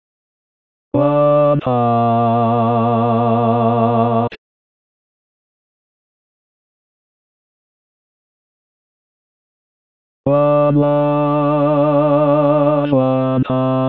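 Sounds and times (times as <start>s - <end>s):
tenor and bass singing: 1.0s - 4.4s, 10.3s - 13.8s.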